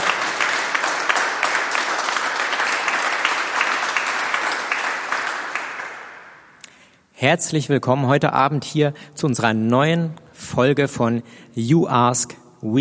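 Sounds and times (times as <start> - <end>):
audience applause: 0.0 - 6.5
speech: 7.2 - 12.7.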